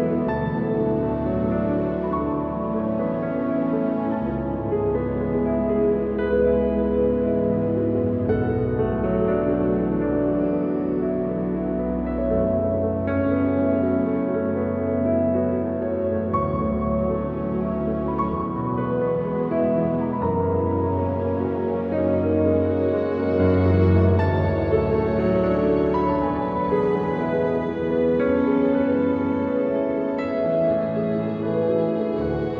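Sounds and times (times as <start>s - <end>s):
mystical relaxing piano music: 0.0s - 32.5s.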